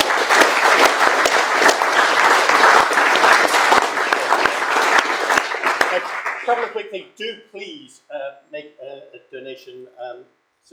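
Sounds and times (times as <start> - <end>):
audience applause: 0.0 - 6.8
speech: 6.9 - 10.7.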